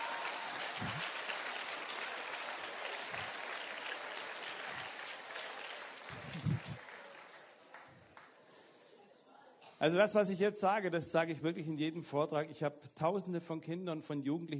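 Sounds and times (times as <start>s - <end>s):
audience applause: 0.0s - 8.4s
speech: 9.8s - 14.5s.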